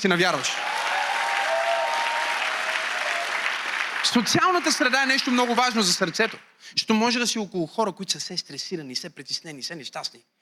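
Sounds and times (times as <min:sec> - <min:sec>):
speech: 0:00.0 - 0:00.7, 0:04.1 - 0:10.4
audience applause: 0:00.3 - 0:06.4.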